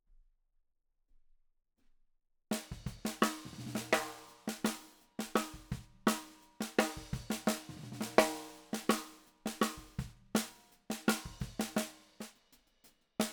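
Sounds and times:
snare drum: 0:02.5 - 0:12.5.

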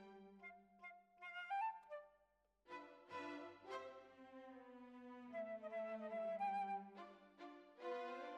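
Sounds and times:
flute: 0:00.3 - 0:02.2, 0:03.1 - 0:04.4, 0:05.0 - 0:08.2.

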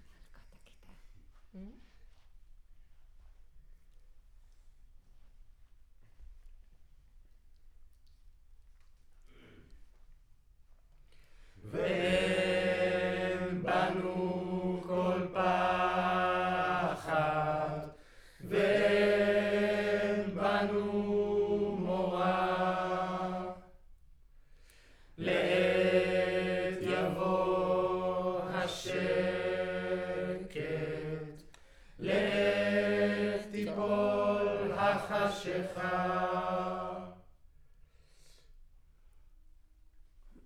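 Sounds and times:
choir recorded with center U47 microphone: 0:11.6 - 0:23.9, 0:25.2 - 0:37.4.

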